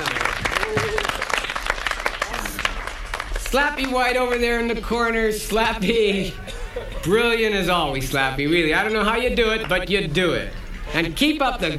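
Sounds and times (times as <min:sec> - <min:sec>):
audience applause: 0:00.0 - 0:04.0
faint crowd voices: 0:00.0 - 0:11.7
speech: 0:03.5 - 0:11.7.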